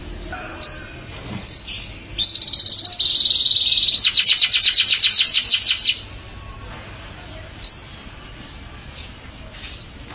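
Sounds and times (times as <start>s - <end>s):
canary song: 0.0s - 6.2s, 7.6s - 8.0s.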